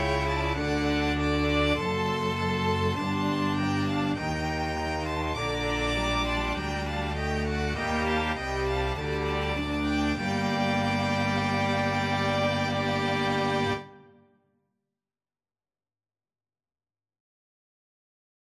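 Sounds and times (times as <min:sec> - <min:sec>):
string ensemble playing a sonata: 0:00.0 - 0:14.2.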